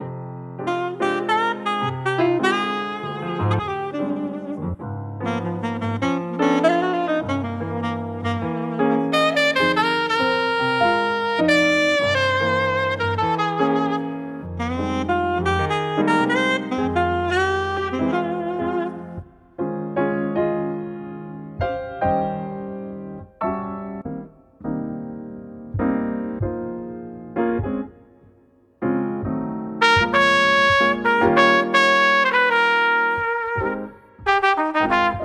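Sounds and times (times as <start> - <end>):
music for reading: 0.0 - 35.2.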